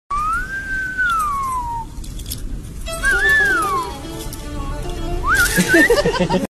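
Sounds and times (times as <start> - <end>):
person whistling: 0.1 - 2.0, 3.0 - 3.9, 5.2 - 6.0
laughter: 5.4 - 6.5.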